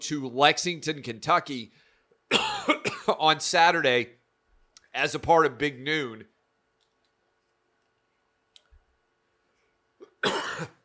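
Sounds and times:
speech: 0.0 - 4.2, 4.9 - 6.3, 10.2 - 10.7
person coughing: 2.3 - 3.2, 10.0 - 10.8.

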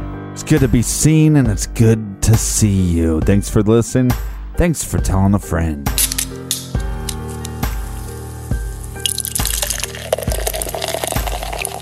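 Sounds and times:
speech: 0.4 - 6.1
beer foam fizzing: 7.6 - 11.8
beer glugging out of a bottle: 9.0 - 11.8.

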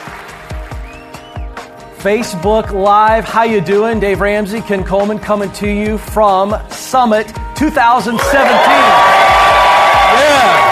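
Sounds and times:
speech: 2.0 - 9.1
crowd cheering and whooping at the EntreLeadership Summit 2017: 8.2 - 10.7.

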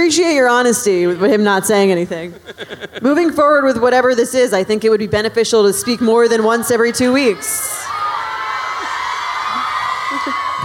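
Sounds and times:
speech: 0.0 - 7.8
laughter: 1.0 - 3.8, 8.7 - 10.6
crowd cheering in a steady loud roar: 5.8 - 10.6.

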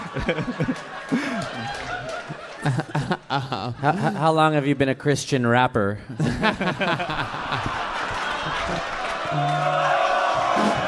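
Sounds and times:
laughter: 0.0 - 4.6, 6.2 - 10.8
speech: 0.2 - 2.0, 2.6 - 7.8
cheering and whoops: 7.7 - 10.8
audience chanting at a live comedy show: 8.2 - 10.8.

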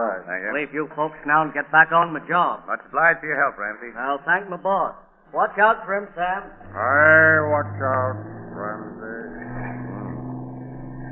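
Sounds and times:
speech: 0.0 - 8.7
engine running: 6.4 - 11.1.

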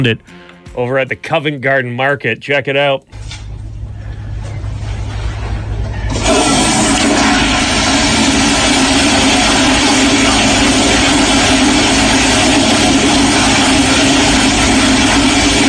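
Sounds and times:
speech: 0.0 - 3.2
long loud public toilet flush: 4.8 - 15.6.

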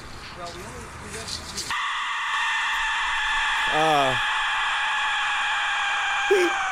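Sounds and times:
Aztec death whistle: 1.7 - 6.7.

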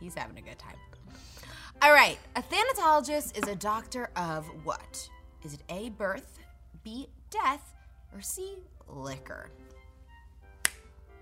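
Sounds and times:
speech: 0.1 - 9.7
finger snap: 10.6 - 10.9.

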